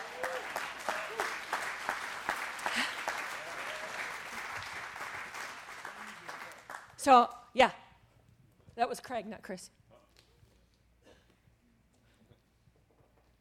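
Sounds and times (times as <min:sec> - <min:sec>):
audience clapping: 0:00.0 - 0:07.1
speech: 0:07.0 - 0:07.8, 0:08.8 - 0:09.8.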